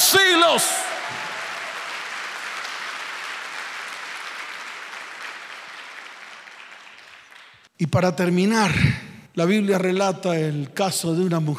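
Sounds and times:
audience applause: 0.0 - 7.7
speech: 0.1 - 1.3, 7.8 - 11.5.

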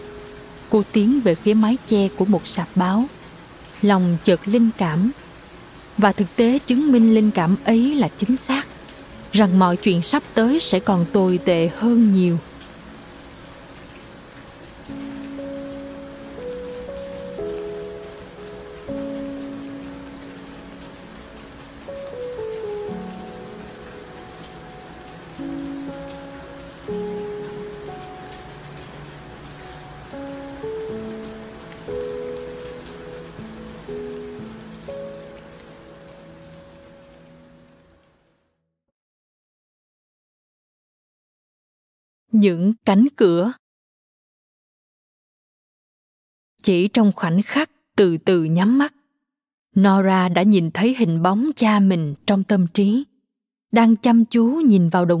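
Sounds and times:
rain falling: 0.0 - 38.4
speech: 0.7 - 3.2, 3.8 - 5.2, 6.0 - 8.7, 9.3 - 12.5, 42.4 - 43.6, 46.6 - 49.0, 49.8 - 53.1, 53.7 - 55.1.

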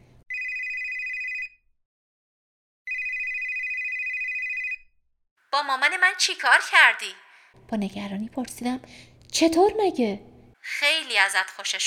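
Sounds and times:
electronic telephone ringing: 0.3 - 1.5, 2.9 - 4.8
speech: 5.6 - 11.8.

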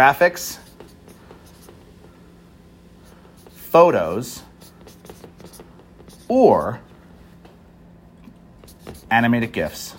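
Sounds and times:
speech: 0.0 - 0.6, 3.7 - 4.5, 6.3 - 6.9, 8.9 - 9.9
pen strokes handwriting on paper: 0.4 - 2.0, 3.0 - 3.8, 4.4 - 6.7, 8.6 - 9.2.

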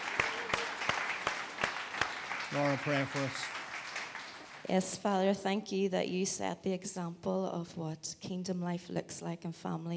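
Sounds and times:
audience applause: 0.0 - 4.8
speech: 2.5 - 3.6, 4.7 - 9.9.

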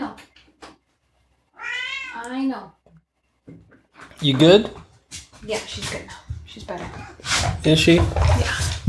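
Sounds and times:
cat meowing behind a closed door: 1.5 - 2.3, 7.0 - 7.2
speech: 2.2 - 4.8, 5.5 - 8.7.

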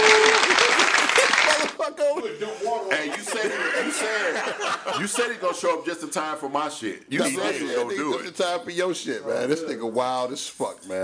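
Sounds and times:
group of people clapping: 0.0 - 1.9
laughter: 0.2 - 5.9
speech: 4.0 - 11.0.

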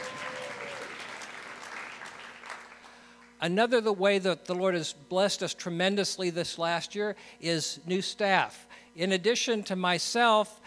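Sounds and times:
audience applause: 0.0 - 2.9
speech: 3.4 - 10.6.

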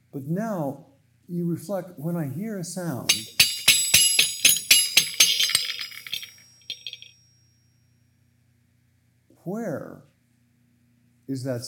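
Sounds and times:
speech: 0.1 - 3.4, 9.5 - 10.1, 11.3 - 11.6
Japanese horse bells jingling: 3.1 - 7.1.

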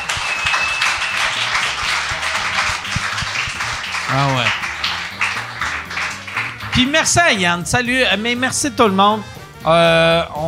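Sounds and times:
round of applause: 0.0 - 7.4
speech: 4.1 - 4.6, 6.8 - 10.4.

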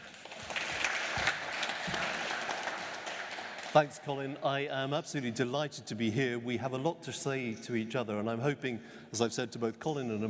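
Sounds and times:
audience applause welcoming a speaker: 0.0 - 4.4
speech: 3.7 - 10.2.

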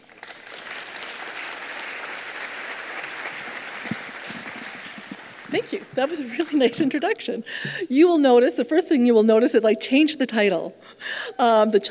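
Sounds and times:
audience applause welcoming a speaker at a talk on health and climate change: 0.0 - 6.7
laughter: 0.5 - 7.0
speech: 5.5 - 11.8.

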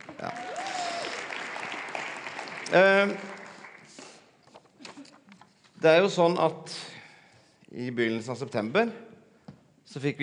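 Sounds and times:
audience applause: 0.0 - 4.2
speech: 2.7 - 3.3, 5.8 - 6.9, 7.8 - 9.1, 9.9 - 10.2.

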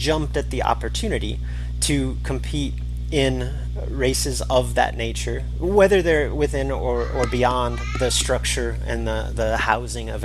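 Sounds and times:
low constant hum: 0.0 - 10.2
speech: 0.0 - 10.2
toddler crying: 6.9 - 8.3.

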